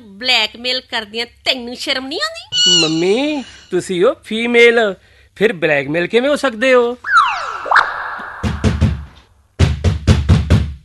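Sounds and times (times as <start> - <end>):
speech: 0.2 - 7.2
knocking on a locked bathroom door: 8.7 - 10.8.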